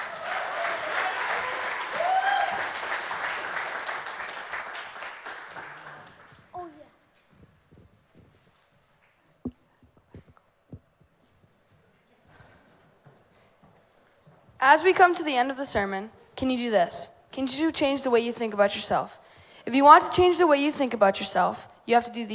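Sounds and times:
crowd applauding: 0.0s - 6.6s
speech: 14.6s - 22.3s.

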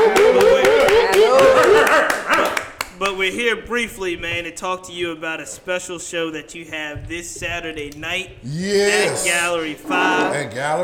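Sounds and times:
excited voices whooping and laughing: 0.0s - 2.6s
hosts clapping hands: 0.0s - 3.6s
speech: 3.2s - 10.8s.

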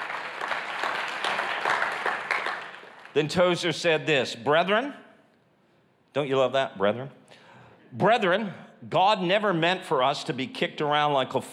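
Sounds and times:
congregation clapping during a church sermon: 0.0s - 3.8s
speech: 3.2s - 5.0s, 6.1s - 7.2s, 7.9s - 11.5s.

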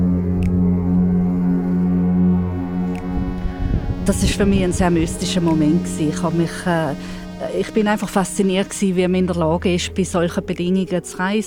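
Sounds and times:
foghorn in a harbour: 0.0s - 11.4s
speech: 4.0s - 11.4s.

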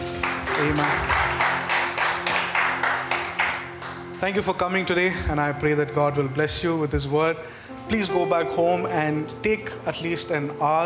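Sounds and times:
audience clapping: 0.0s - 4.7s
speech: 0.6s - 1.2s, 4.2s - 10.8s.

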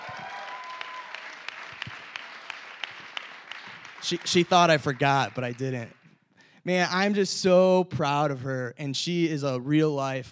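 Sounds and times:
audience applause: 0.0s - 6.0s
speech: 4.0s - 6.0s, 6.6s - 10.3s.

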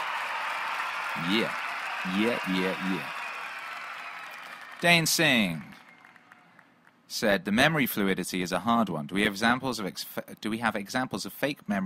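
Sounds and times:
applause: 0.0s - 7.0s
speech: 1.2s - 3.2s, 4.8s - 5.8s, 7.1s - 11.8s.

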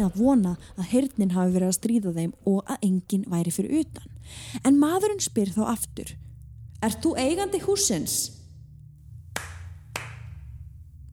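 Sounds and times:
speech: 0.0s - 8.4s
hand claps: 9.3s - 10.5s.

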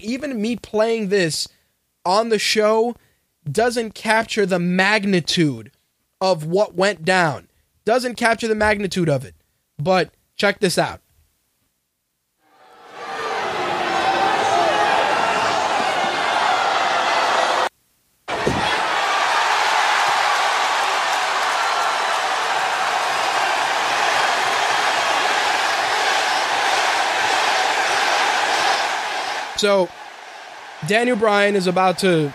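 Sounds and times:
speech: 0.0s - 11.0s, 29.6s - 30.0s, 30.8s - 32.3s
wrestling arena crowd roaring: 12.4s - 17.7s, 18.3s - 32.3s.

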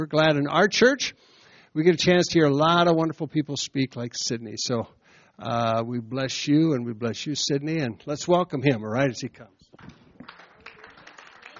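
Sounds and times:
speech: 0.0s - 10.0s
audience clapping: 9.8s - 11.5s.

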